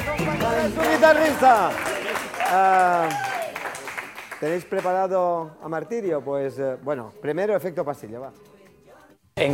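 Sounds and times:
audience applause: 0.2 - 5.0
speech: 0.7 - 1.9, 2.5 - 3.3, 4.4 - 8.5, 9.4 - 9.5.

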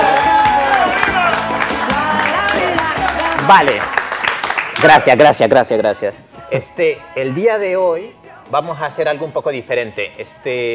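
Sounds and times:
audience applause: 0.0 - 5.1
speech: 3.5 - 3.9, 4.8 - 10.7.

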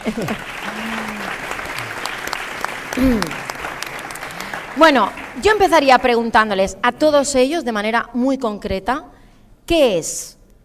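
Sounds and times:
speech: 0.0 - 1.0, 3.0 - 3.4, 4.8 - 10.4
audience applause: 0.0 - 5.8.

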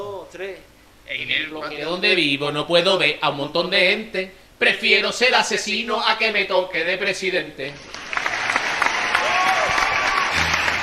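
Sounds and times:
speech: 0.3 - 8.0
applause sound effect: 7.9 - 10.8.

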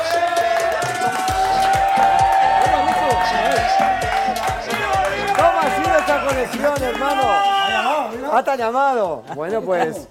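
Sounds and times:
audience applause: 0.0 - 7.4
speech: 6.4 - 10.0.

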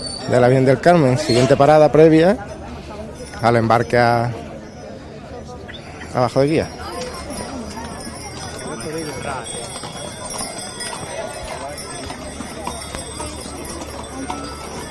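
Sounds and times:
crowd chatter: 0.0 - 14.8
speech: 0.3 - 2.6, 3.4 - 4.4, 6.1 - 6.8
horse hooves clip-clopping pulling a cart in a procession: 6.4 - 14.8.

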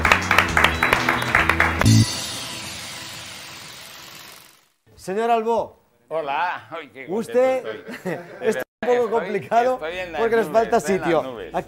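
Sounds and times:
audience applause: 0.0 - 4.4
rhythmic music: 0.0 - 4.6
speech: 5.0 - 11.6
laughter: 7.4 - 9.3.

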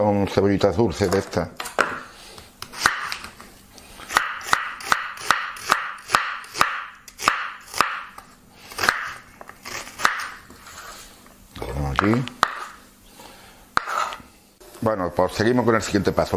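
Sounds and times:
speech: 0.0 - 1.8, 12.1 - 12.4, 15.3 - 16.3
knife chopping sweet onions on a board: 2.6 - 3.2, 4.1 - 8.2, 8.8 - 10.4, 12.0 - 12.8.

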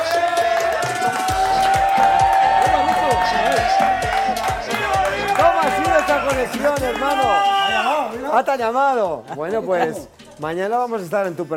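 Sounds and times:
audience applause: 0.0 - 7.4
speech: 6.3 - 11.5.

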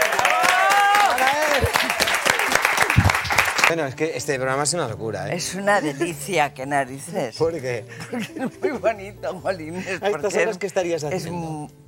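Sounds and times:
applause: 0.0 - 3.7
speech: 3.7 - 11.8.

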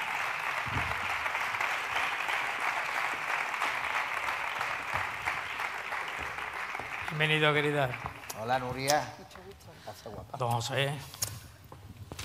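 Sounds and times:
audience applause: 0.0 - 8.8
speech: 7.2 - 11.2.

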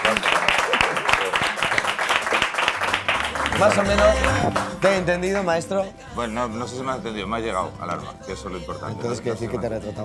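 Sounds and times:
audience applause: 0.0 - 5.6
speech: 3.6 - 10.0.

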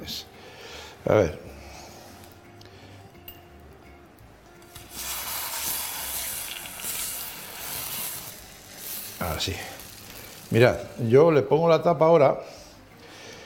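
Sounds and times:
speech: 1.0 - 1.5, 9.4 - 9.8, 10.5 - 12.6
salmon fillet searing skin-side down in a hot frying pan: 4.7 - 11.1.

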